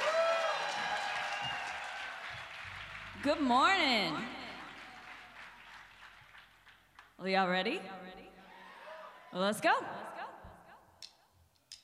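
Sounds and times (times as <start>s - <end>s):
audience applause: 0.0s - 7.0s
speech: 3.2s - 4.4s, 7.2s - 8.2s, 9.3s - 10.2s.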